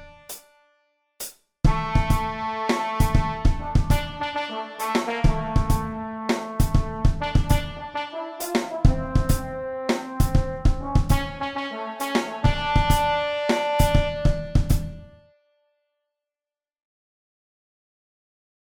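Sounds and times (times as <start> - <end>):
trombone percussive hits: 1.7 - 15.1.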